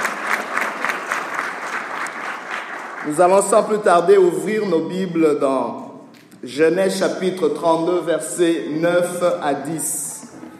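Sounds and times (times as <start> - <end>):
church congregation applauding during a worship service: 0.0 - 4.1
speech: 3.0 - 5.8, 6.4 - 10.0.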